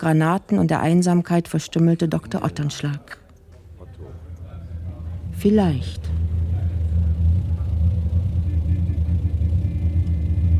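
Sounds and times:
speech: 0:00.0 - 0:03.2, 0:05.4 - 0:06.2
car engine idling: 0:03.6 - 0:10.5.

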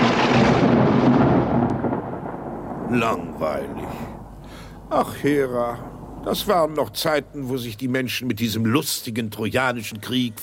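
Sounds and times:
rumbling thunder: 0:00.0 - 0:07.5
speech: 0:02.9 - 0:04.2, 0:04.9 - 0:10.4.

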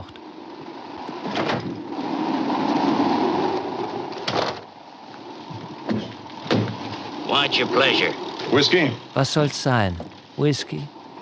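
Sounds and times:
sandstorm wind roaring and whistling: 0:00.5 - 0:04.3
speech: 0:07.4 - 0:11.0.

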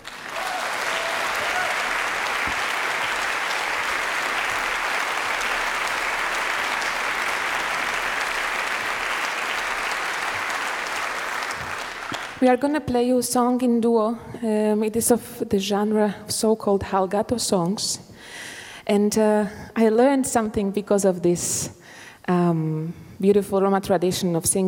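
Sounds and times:
large audience applause: 0:00.0 - 0:12.4
speech: 0:12.4 - 0:24.6.

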